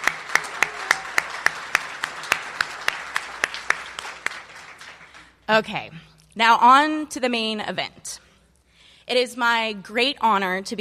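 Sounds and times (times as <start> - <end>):
audience applause: 0.0 - 5.3
speech: 5.5 - 8.0, 9.1 - 10.8.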